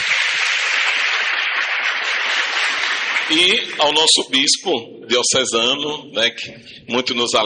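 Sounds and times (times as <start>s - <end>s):
audience applause: 0.0s - 4.2s
speech: 3.3s - 7.4s.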